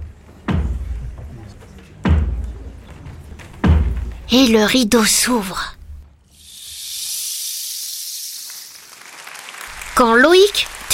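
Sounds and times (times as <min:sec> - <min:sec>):
heavy knocks announcing the start of a play at a school festival: 0:00.4 - 0:01.2, 0:02.0 - 0:02.5, 0:03.4 - 0:04.3
speech: 0:04.3 - 0:05.8, 0:10.1 - 0:10.9.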